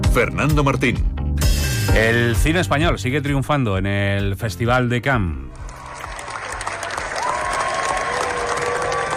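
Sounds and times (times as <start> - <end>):
speech: 0.1 - 1.1, 1.9 - 5.5
long standing ovation at film festival: 5.5 - 9.1.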